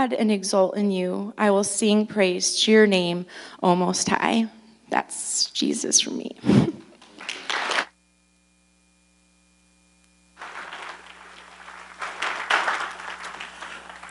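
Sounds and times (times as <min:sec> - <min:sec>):
speech: 0:00.0 - 0:06.8
steady low electrical hum: 0:00.0 - 0:14.0
audience applause: 0:07.2 - 0:07.8, 0:10.4 - 0:14.0.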